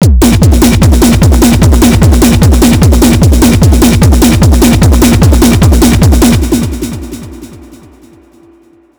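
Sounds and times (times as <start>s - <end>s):
techno music test: 0.0s - 8.1s.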